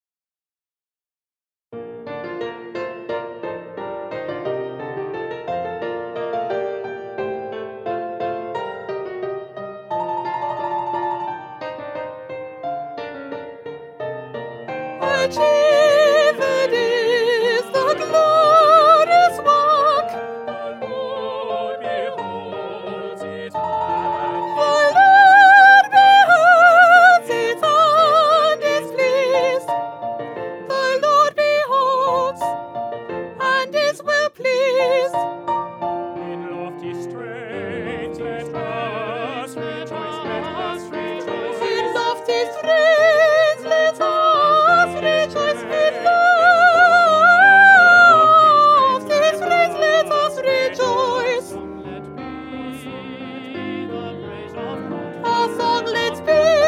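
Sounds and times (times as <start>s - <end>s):
soprano singing: 14.6s - 56.6s.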